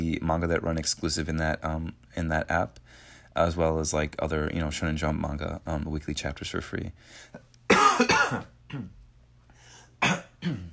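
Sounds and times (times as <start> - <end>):
speech: 0.0 - 7.4, 8.0 - 9.0, 10.0 - 10.7
low steady hum: 0.0 - 10.7
person coughing: 7.7 - 9.0, 10.0 - 10.7.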